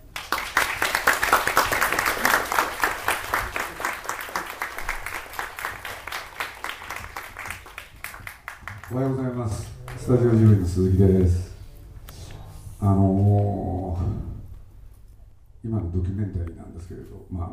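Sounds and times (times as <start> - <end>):
applause welcoming a guest: 0.0 - 10.6
speech: 8.9 - 11.4, 12.8 - 14.2, 15.9 - 17.5.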